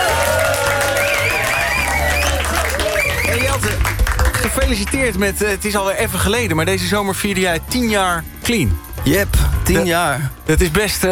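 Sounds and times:
studio applause for a guest on a radio morning show: 0.0s - 5.1s
speech: 4.7s - 11.1s.

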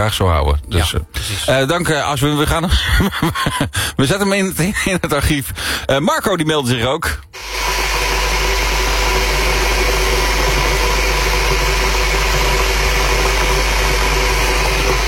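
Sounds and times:
speech: 0.0s - 7.6s
laughter: 2.6s - 4.0s
electric kettle boiling water: 7.4s - 15.0s.

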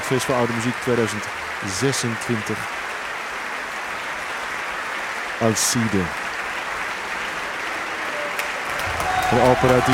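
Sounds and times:
concert audience applauding in the large hall of Tivoli Vredenburg: 0.0s - 9.9s
speech: 0.1s - 2.8s, 5.4s - 6.2s, 9.3s - 9.9s.

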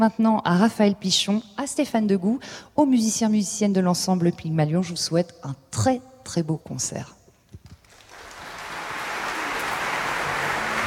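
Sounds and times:
speech: 0.0s - 7.2s
concert audience applause: 7.9s - 10.8s.

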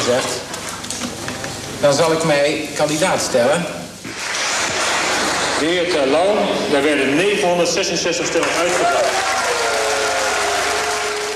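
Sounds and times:
speech: 0.1s - 1.1s, 1.8s - 3.8s, 5.6s - 9.3s
applause from delegates at a D66 party congress: 4.1s - 5.6s, 8.2s - 11.3s
delegates booing at a D66 party congress: 8.5s - 11.3s.

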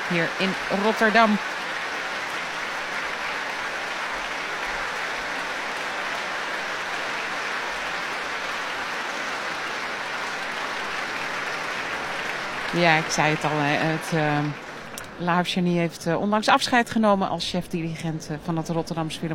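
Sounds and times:
concert audience applause in Rotterdam: 0.0s - 15.5s
speech: 0.1s - 1.6s, 12.8s - 14.6s, 15.2s - 19.3s.

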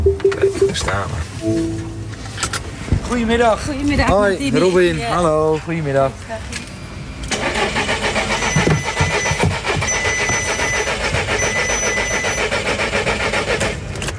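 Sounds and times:
car engine cranking but failing to start: 0.0s - 14.1s
speech: 0.9s - 1.9s, 3.1s - 6.6s.

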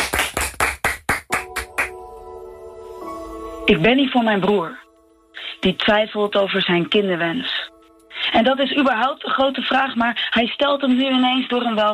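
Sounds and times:
sharp loud applause claps: 0.0s - 2.0s
faint steady tonal hum: 2.0s - 11.3s
speech: 3.7s - 4.8s, 5.6s - 7.6s, 8.3s - 11.9s.

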